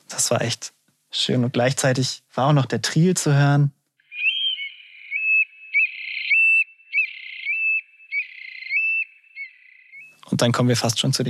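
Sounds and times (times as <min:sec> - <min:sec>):
speech: 0:00.2 - 0:03.8, 0:10.4 - 0:11.2
Eurasian scops owl calling with whistled notes: 0:04.0 - 0:10.2.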